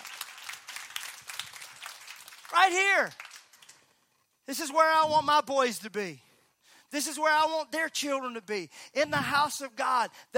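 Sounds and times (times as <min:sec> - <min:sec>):
audience clapping: 0:00.0 - 0:04.1
speech: 0:02.6 - 0:03.2, 0:04.5 - 0:06.2, 0:06.9 - 0:10.3.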